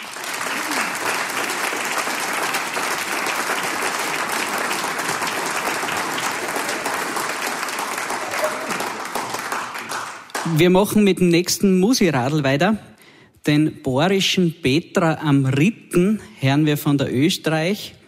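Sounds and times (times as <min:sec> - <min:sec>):
audience applause: 0:00.0 - 0:10.6
speech: 0:10.5 - 0:12.9, 0:13.5 - 0:18.0.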